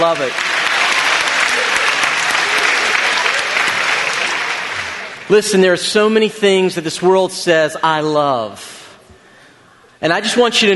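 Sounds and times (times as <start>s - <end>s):
speech: 0.0s - 0.6s, 5.3s - 8.8s, 10.0s - 10.7s
audience applause: 0.0s - 5.6s.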